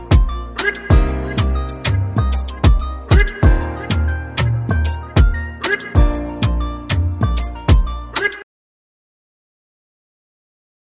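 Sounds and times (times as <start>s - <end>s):
instrumental music: 0.0s - 8.4s.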